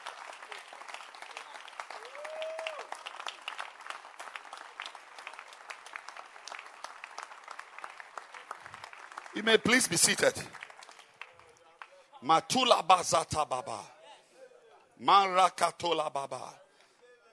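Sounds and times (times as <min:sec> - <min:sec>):
audience applause: 0:00.0 - 0:12.0
speech: 0:09.4 - 0:10.6, 0:12.2 - 0:14.0, 0:15.0 - 0:16.6.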